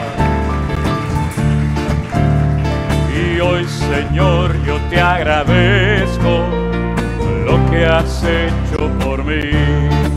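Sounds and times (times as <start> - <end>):
audience applauding: 0.0 - 5.4
speech: 3.6 - 6.6, 7.7 - 9.9.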